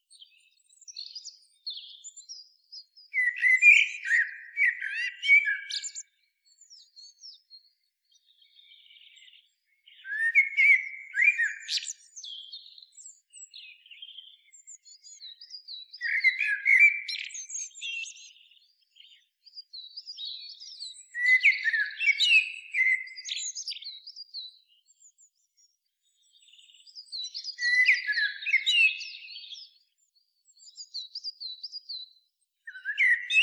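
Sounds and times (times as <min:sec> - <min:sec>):
Common blackbird singing: 0:00.0 - 0:33.4.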